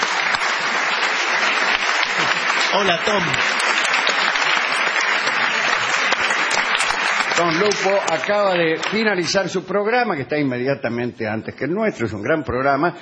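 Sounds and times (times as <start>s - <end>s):
studio audience applauding: 0.0s - 10.0s
speech: 2.7s - 3.6s, 7.4s - 12.9s.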